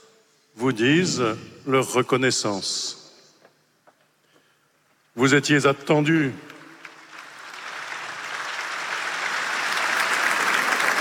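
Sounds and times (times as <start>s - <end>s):
speech: 0.6s - 3.0s, 5.2s - 6.5s
applause from a large crowd: 6.8s - 11.0s.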